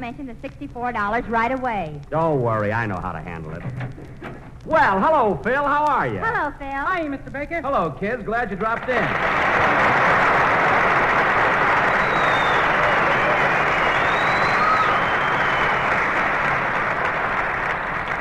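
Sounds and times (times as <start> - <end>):
speech: 0.0 - 10.2
applause: 8.6 - 18.1.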